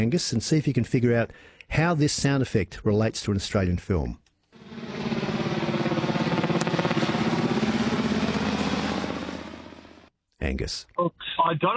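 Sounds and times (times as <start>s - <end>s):
speech: 0.0s - 4.2s, 10.6s - 11.7s
helicopter: 4.5s - 10.1s.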